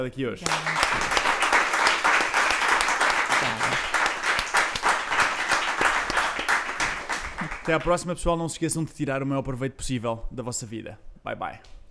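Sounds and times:
speech: 0.0s - 1.3s, 3.4s - 4.0s, 7.7s - 11.7s
audience applause: 0.4s - 8.0s.

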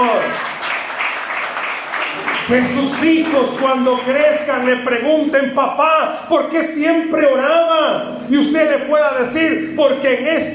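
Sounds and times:
audience applause: 0.0s - 4.4s
speech: 2.5s - 10.5s.

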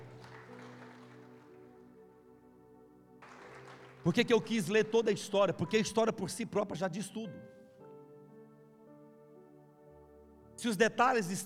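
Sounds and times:
audience clapping: 0.0s - 2.0s, 3.2s - 5.7s
speech: 4.0s - 7.6s, 10.6s - 11.4s.

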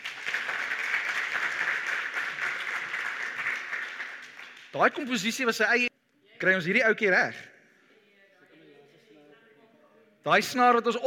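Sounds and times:
audience hand clapping: 0.0s - 5.3s
speech: 4.7s - 7.5s, 10.2s - 11.0s.

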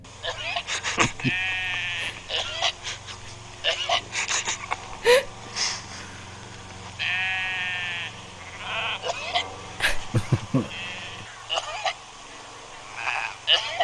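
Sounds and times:
sheep bleating: 0.0s - 12.0s, 12.9s - 13.8s
low steady background: 0.0s - 13.8s
person laughing and murmuring: 0.2s - 6.8s, 9.7s - 11.4s.

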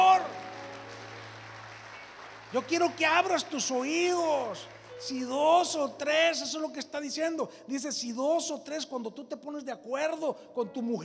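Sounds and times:
applause: 0.0s - 6.1s
speech: 2.5s - 11.0s.

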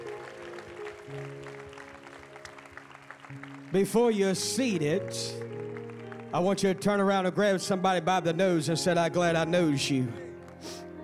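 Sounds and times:
audience clapping in praise: 0.0s - 7.4s
speech: 1.1s - 1.4s, 3.3s - 5.4s, 6.3s - 10.8s.

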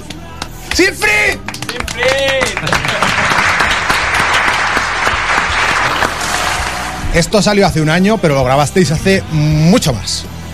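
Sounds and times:
applause sound effect: 0.0s - 7.1s
speech: 0.8s - 3.2s, 7.2s - 10.3s.

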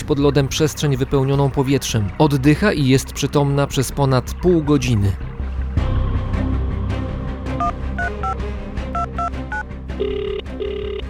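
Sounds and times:
low rumbling background: 0.0s - 11.0s
speech: 0.1s - 5.3s
phone DTMF dialing tones to call for help: 7.6s - 8.4s, 9.0s - 11.0s.

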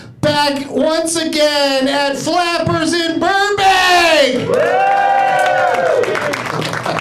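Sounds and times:
speech: 0.4s - 5.0s
live audience cheering and clapping: 4.2s - 6.9s.

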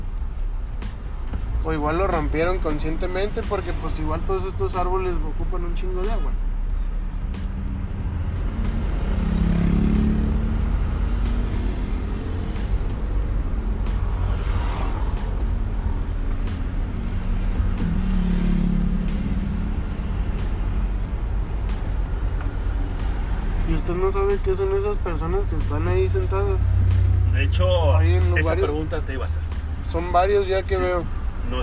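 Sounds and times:
traffic noise: 0.0s - 31.6s
speech: 1.6s - 6.5s, 24.0s - 26.8s, 27.4s - 31.6s
heavy vehicle passing on a road: 6.5s - 30.4s.

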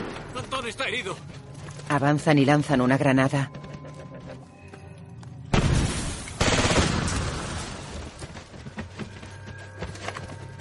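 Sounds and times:
speech: 0.4s - 3.6s
gunfire: 5.5s - 7.9s.

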